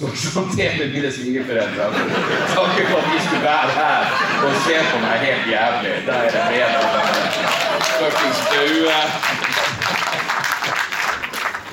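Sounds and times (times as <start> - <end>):
speech: 0.0 - 9.6
laughter: 1.3 - 11.2
audience applause: 6.6 - 11.7.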